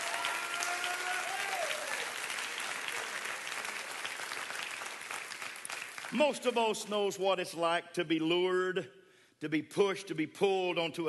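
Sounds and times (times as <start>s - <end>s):
audience clapping: 0.0s - 6.8s
speech: 6.1s - 11.0s.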